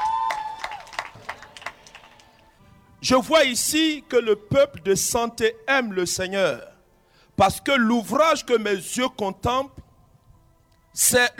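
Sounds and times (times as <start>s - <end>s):
audience clapping: 0.0s - 2.5s
speech: 3.0s - 6.7s, 7.4s - 9.8s, 11.0s - 11.3s.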